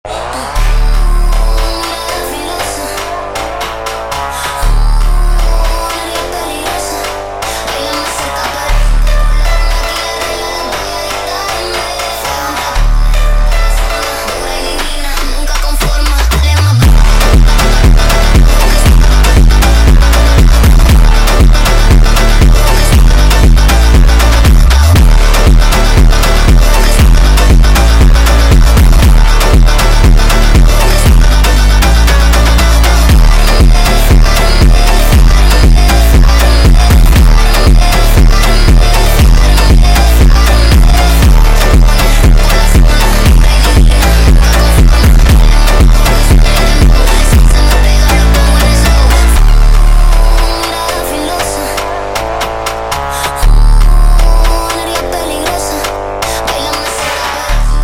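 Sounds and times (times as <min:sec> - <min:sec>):
sped up funk music: 0:00.1 - 0:57.8.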